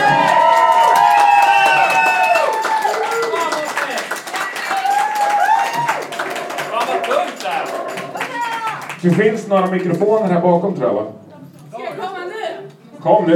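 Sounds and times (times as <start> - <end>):
audience applause: 0.0 - 10.3
speech: 9.0 - 11.2, 13.0 - 13.3.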